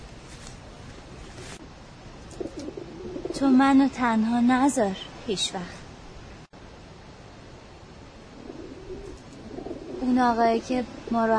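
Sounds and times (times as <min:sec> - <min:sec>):
hiss: 0:00.0 - 0:11.3
pigeons cooing in a cage: 0:02.3 - 0:03.4, 0:08.3 - 0:11.1
speech: 0:03.4 - 0:05.8, 0:10.1 - 0:11.3.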